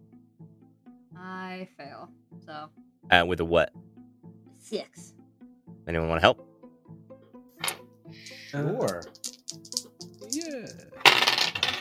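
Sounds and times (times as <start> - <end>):
speech: 1.2 - 3.8, 4.6 - 5.2, 5.9 - 6.5, 8.5 - 9.2
dice rolling on a table: 8.8 - 11.7.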